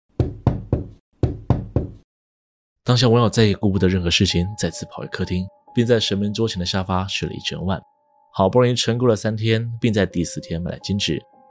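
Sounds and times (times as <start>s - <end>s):
violent banging on a window: 0.2s - 2.0s
speech: 2.9s - 11.4s.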